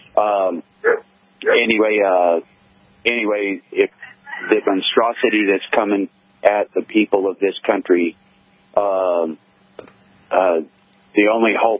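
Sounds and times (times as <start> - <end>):
speech: 0.2 - 8.2, 8.8 - 9.4, 10.3 - 11.7
dog barking: 0.8 - 1.0.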